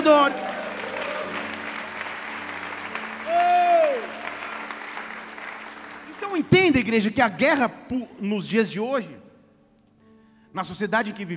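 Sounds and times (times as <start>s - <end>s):
audience clapping and cheering: 0.0s - 7.1s
speech: 0.1s - 0.5s, 6.6s - 9.2s, 10.6s - 11.3s.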